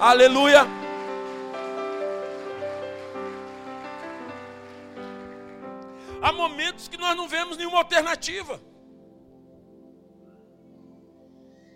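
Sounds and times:
speech: 0:00.0 - 0:00.8, 0:06.3 - 0:08.7
audience applause: 0:00.0 - 0:06.1.

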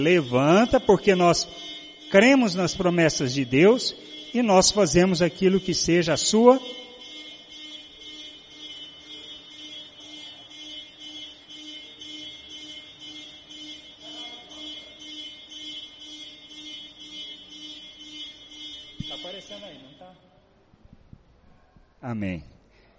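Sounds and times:
speech: 0:00.0 - 0:06.8, 0:22.2 - 0:22.5
horn sounding: 0:00.0 - 0:07.9, 0:12.8 - 0:20.2.

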